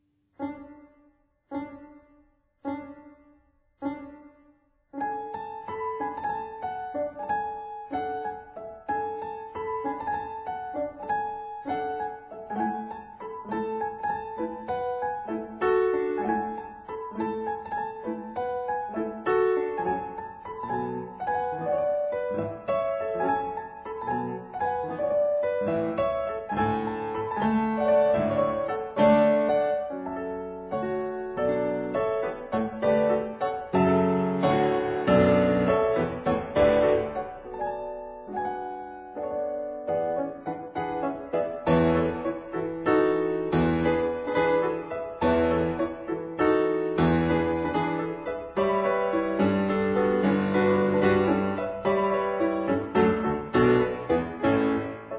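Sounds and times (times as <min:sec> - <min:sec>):
piano gangar: 0:00.0 - 0:55.1.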